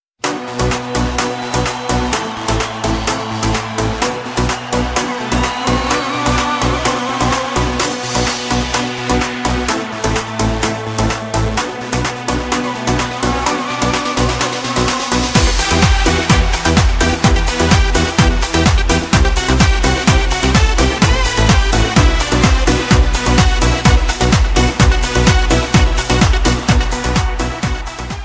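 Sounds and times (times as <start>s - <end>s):
instrumental music: 0.2s - 28.2s.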